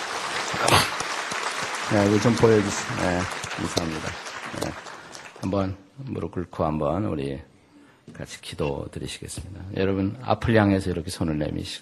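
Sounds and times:
crowd applause: 0.0s - 5.7s
speech: 1.9s - 7.5s, 8.1s - 11.7s.

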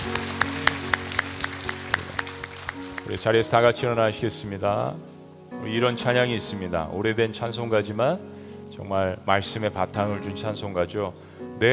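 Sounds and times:
church congregation clapping in praise during a Korean worship service: 0.0s - 3.4s
speech: 3.1s - 11.7s.

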